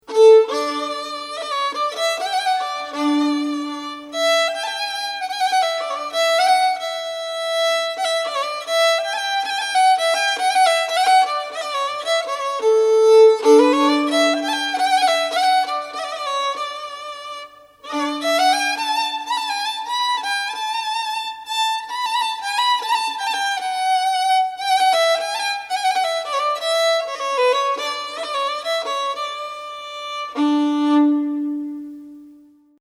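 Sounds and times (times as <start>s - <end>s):
improvisation in major key: 0.0s - 32.4s.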